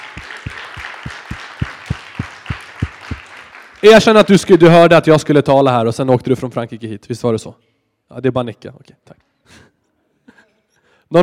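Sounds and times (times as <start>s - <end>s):
audience applause: 0.0s - 4.3s
speech: 3.8s - 9.7s, 11.1s - 11.2s.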